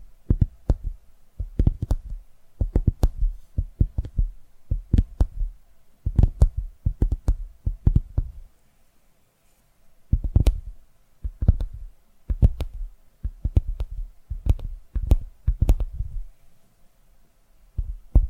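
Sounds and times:
faint steady hum: 0.0s - 18.2s
ASMR soft thumpy tapping: 0.3s - 5.5s, 6.1s - 8.4s, 10.1s - 16.3s.

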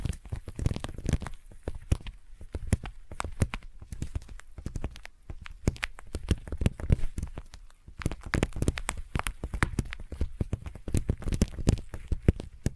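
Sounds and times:
intense sticky tapping: 0.0s - 12.7s.

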